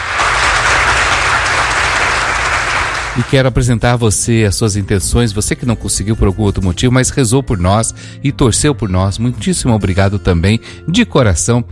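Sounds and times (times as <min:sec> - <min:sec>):
applause: 0:00.0 - 0:03.4
speech: 0:03.2 - 0:11.7.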